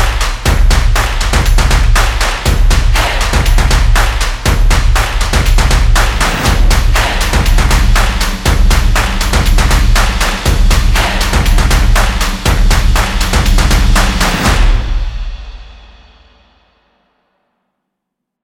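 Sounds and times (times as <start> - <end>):
energetic percussion action intro music: 0.0 - 16.8.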